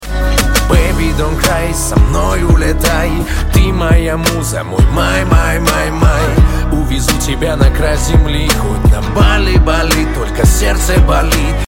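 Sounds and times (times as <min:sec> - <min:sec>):
song: 0:00.0 - 0:11.6.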